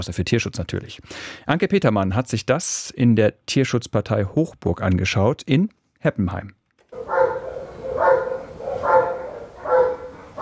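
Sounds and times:
speech: 0:00.0 - 0:06.6
Belgian shepherd dog barking in kennel: 0:07.0 - 0:10.4.

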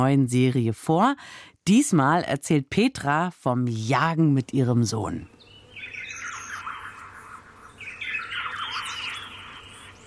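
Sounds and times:
speech: 0:00.0 - 0:05.4
bird calls: 0:05.4 - 0:10.0.

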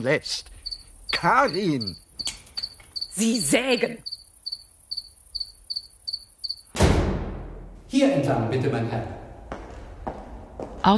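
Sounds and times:
speech: 0:00.0 - 0:00.5, 0:01.2 - 0:02.0, 0:03.2 - 0:04.1, 0:07.9 - 0:09.2
cicadas singing: 0:00.0 - 0:06.8.

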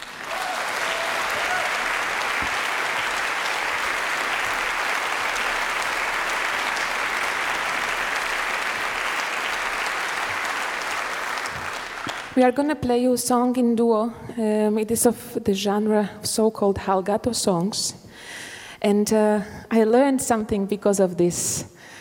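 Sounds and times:
audience applause welcoming guitar player: 0:00.0 - 0:12.4
speech: 0:12.4 - 0:21.9.

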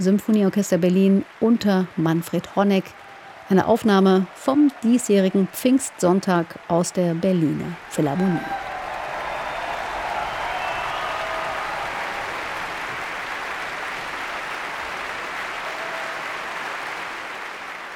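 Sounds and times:
speech: 0:00.0 - 0:08.7
concert audience applause after symphony: 0:00.0 - 0:17.9.

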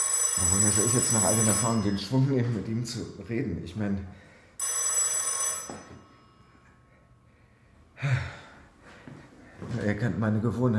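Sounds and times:
telephone ringing: 0:00.0 - 0:03.2, 0:04.6 - 0:06.8
speech: 0:00.4 - 0:04.2, 0:09.8 - 0:10.7
breathy sigh: 0:06.9 - 0:09.2.

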